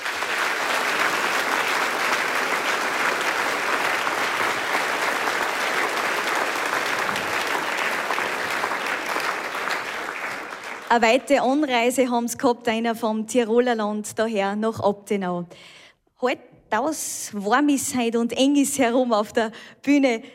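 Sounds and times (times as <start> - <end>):
audience applause: 0.0 - 11.0
speech: 10.9 - 20.3.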